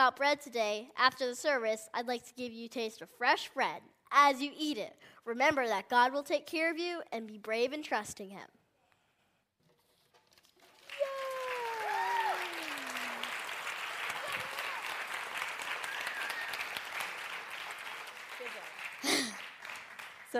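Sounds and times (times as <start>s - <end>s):
speech: 0.0s - 8.6s
audience applause: 10.6s - 20.3s.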